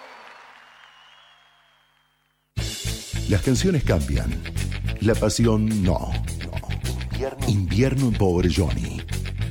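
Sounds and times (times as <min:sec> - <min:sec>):
audience applause: 0:00.0 - 0:02.2
speech: 0:03.3 - 0:06.4, 0:07.2 - 0:09.2.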